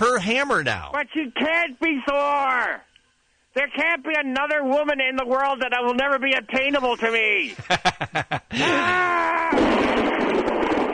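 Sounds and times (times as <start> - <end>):
speech: 0.0 - 2.9, 3.6 - 10.0
laughter: 7.5 - 9.2
person imitating thunder and lightning: 8.5 - 9.7.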